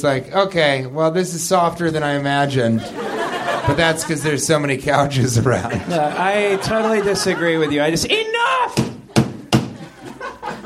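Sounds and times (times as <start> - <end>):
speech: 0.0 - 3.0, 3.7 - 8.8
laughter: 2.6 - 10.6
plastic hammer banged like a gavel: 8.8 - 9.8.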